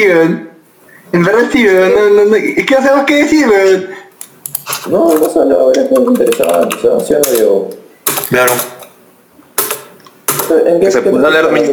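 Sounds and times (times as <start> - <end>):
speech: 0.0 - 0.5, 1.1 - 4.0, 4.8 - 8.8, 10.5 - 11.7
keyboard typing: 4.2 - 9.0, 9.6 - 10.8.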